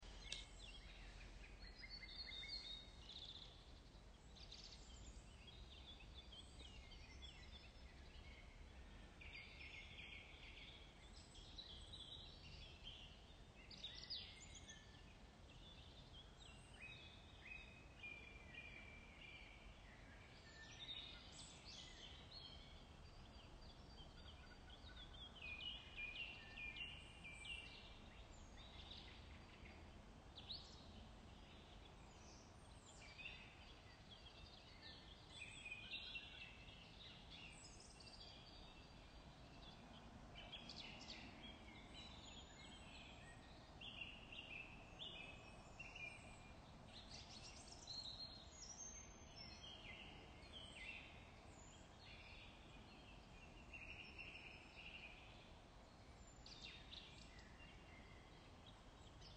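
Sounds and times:
morning forest sounds: 0.0 - 59.3.

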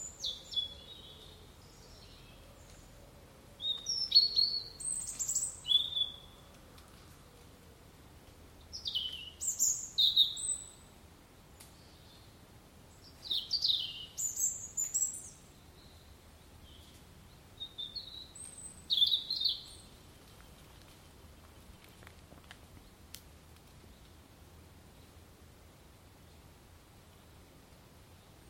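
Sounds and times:
birdsong at Seckley viewpoint: 0.0 - 7.4, 8.6 - 10.9, 11.6 - 22.0.

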